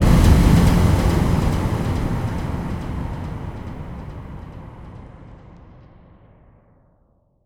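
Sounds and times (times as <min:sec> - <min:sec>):
bass drum FX kicks: 0:00.0 - 0:05.8.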